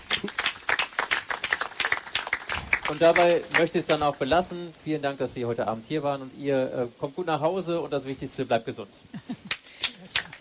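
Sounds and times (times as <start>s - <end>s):
applause: 0.0s - 4.3s, 9.5s - 10.4s
speech: 2.9s - 9.4s.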